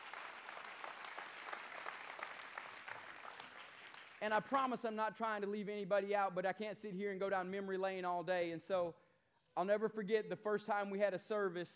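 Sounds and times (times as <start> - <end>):
crowd applause for worship team: 0.0 - 4.2
speech: 4.2 - 11.7.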